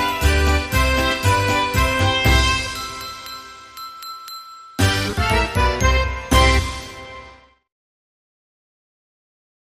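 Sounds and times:
Christmas polka music: 0.0 - 3.2, 4.8 - 7.4.

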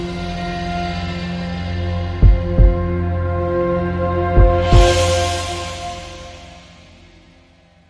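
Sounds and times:
crime music sting without piano: 1.8 - 7.5.

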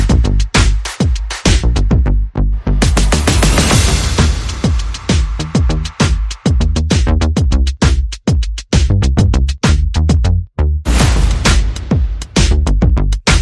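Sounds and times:
percussion: 0.0 - 10.3, 10.9 - 13.3
bass: 0.0 - 13.3
sound effects: 2.6 - 5.9, 10.9 - 12.6.

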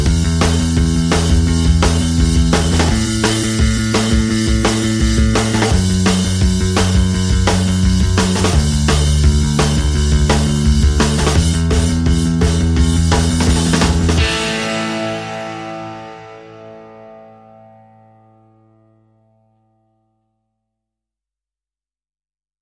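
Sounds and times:
drums: 0.0 - 17.8
bass: 0.0 - 20.2.

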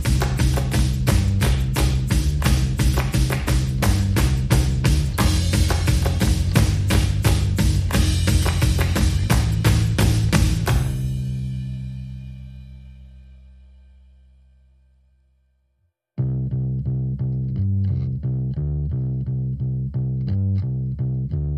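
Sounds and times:
drums: 0.0 - 12.2
bass: 0.0 - 21.5.

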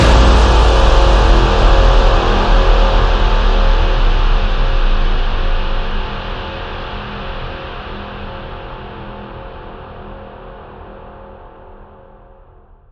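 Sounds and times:
big one-shot impact hit: 0.0 - 7.4.

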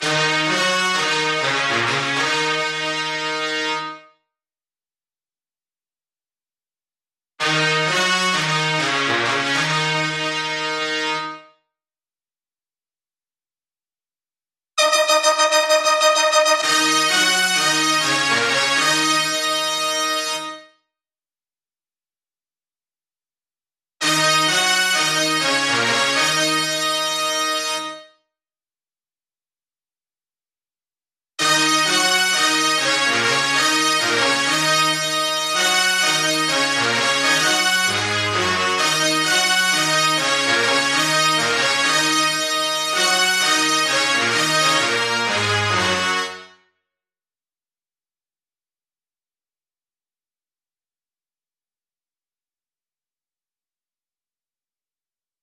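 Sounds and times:
brass instruments: 0.0 - 4.2, 7.4 - 11.6, 14.8 - 20.8, 24.0 - 28.2, 31.4 - 46.7.

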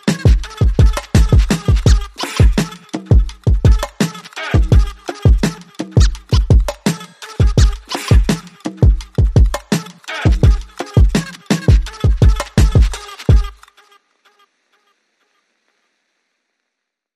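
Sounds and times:
drums: 0.0 - 13.6
vocals: 0.0 - 15.4.

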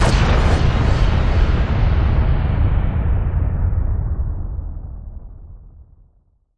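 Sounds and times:
big boomy impact: 0.0 - 4.8.

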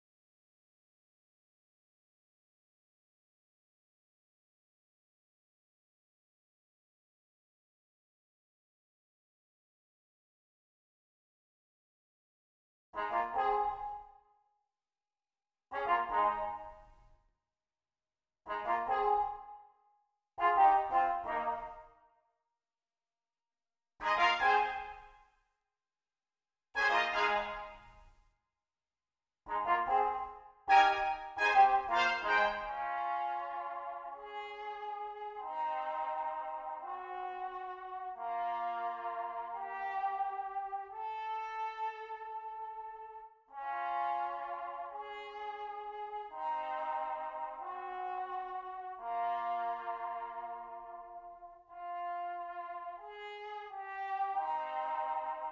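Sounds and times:
clean brass instruments playing: 13.0 - 14.0, 15.7 - 16.9, 18.5 - 19.6, 20.4 - 21.9, 24.0 - 25.1, 26.8 - 28.0, 29.5 - 55.5.

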